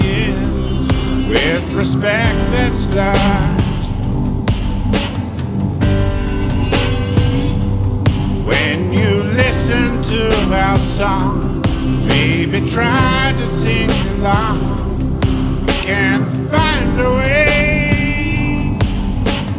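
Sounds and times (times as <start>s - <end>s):
whale song: 0.0s - 19.5s.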